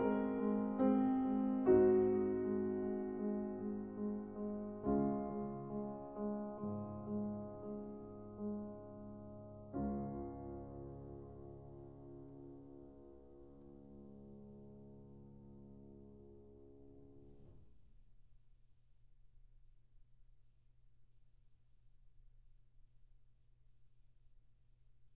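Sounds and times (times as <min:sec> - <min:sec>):
piano prelude in D flat major: 0:00.0 - 0:17.7.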